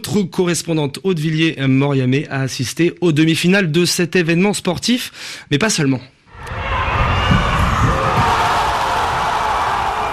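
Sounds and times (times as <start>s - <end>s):
speech: 0.1s - 6.6s
spectators roaring in the stands at a futsal match in Buenos Aires: 6.3s - 10.1s.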